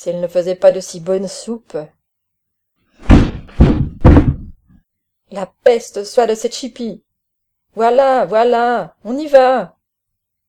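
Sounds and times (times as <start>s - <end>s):
speech: 0.0s - 2.0s, 5.3s - 7.0s, 7.7s - 9.8s
cane knocking on the ceiling: 3.0s - 4.7s.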